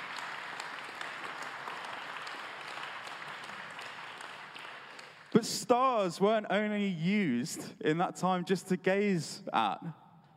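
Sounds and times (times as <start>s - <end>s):
audience applause: 0.0s - 5.4s
speech: 5.4s - 10.0s.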